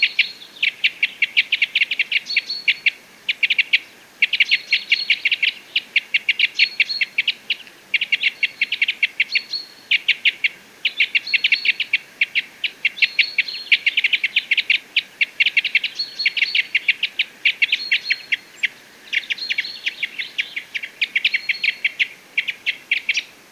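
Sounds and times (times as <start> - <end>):
parrot crossbill chip calls: 0.0 - 23.5.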